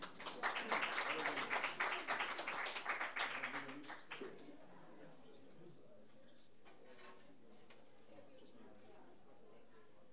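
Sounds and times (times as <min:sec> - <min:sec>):
audience applause at a live music event: 0:00.0 - 0:04.0.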